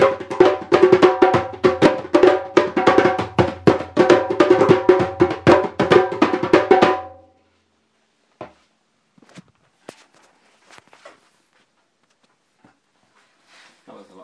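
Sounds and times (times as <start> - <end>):
djembes: 0.0 - 7.2.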